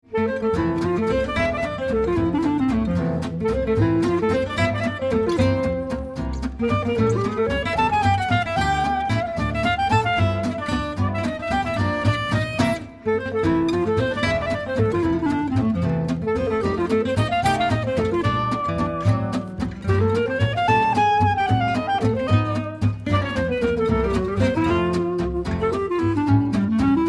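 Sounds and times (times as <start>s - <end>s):
swing waltz music: 0.1s - 27.0s.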